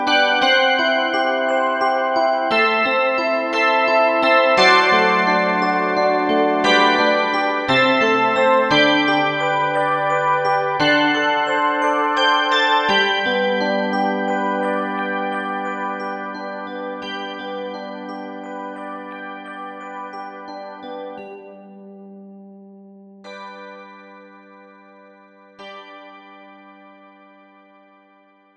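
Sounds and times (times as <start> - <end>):
handbells ringing: 0.0 - 21.4.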